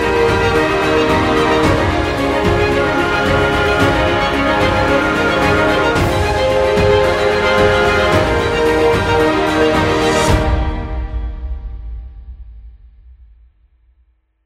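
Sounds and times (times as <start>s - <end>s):
piano trailer music: 0.0s - 11.2s.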